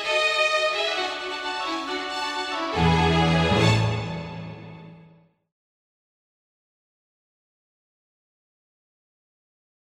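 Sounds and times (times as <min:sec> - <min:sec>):
easy listening and classical music: 0:00.0 - 0:05.2.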